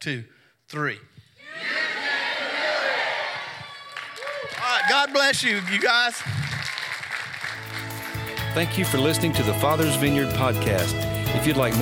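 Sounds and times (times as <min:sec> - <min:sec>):
speech: 0:00.0 - 0:01.9, 0:04.8 - 0:06.6, 0:08.5 - 0:11.8
crowd shouting together on cue: 0:01.4 - 0:04.5.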